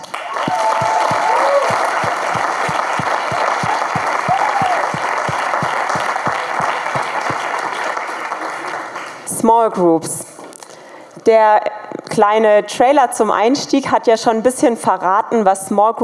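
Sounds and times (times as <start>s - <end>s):
audience applause: 0.0s - 9.3s
speech: 9.5s - 10.3s, 11.2s - 16.0s.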